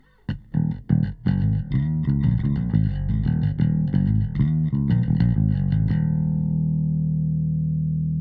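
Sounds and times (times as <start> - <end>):
bass through a limiter: 0.0 - 8.1.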